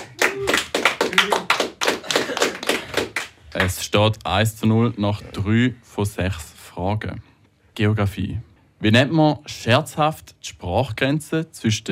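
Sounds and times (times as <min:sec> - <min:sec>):
audience applause: 0:00.0 - 0:03.4
speech: 0:03.6 - 0:11.9.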